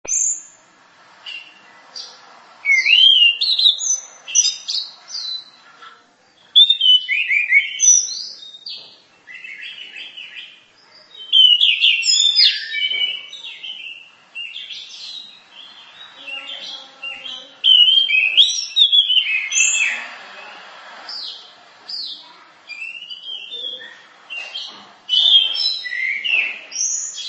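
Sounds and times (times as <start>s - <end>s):
bird singing complex song of twitters, chips and swooping whistles: 0.0s - 27.2s.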